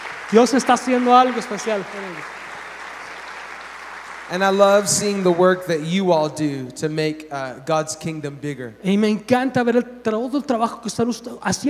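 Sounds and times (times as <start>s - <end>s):
audience applause: 0.0s - 5.9s
speech: 0.3s - 2.4s, 4.3s - 11.6s.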